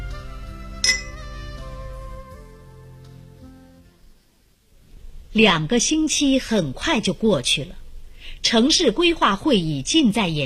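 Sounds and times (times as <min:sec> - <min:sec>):
soft music: 0:00.0 - 0:04.3
two glasses clinking in a toast: 0:00.8 - 0:01.2
speech: 0:05.4 - 0:07.8, 0:08.4 - 0:10.4.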